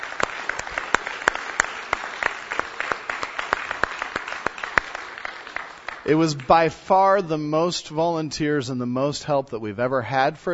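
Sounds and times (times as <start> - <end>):
round of applause: 0.0 - 6.8
speech: 6.1 - 10.5.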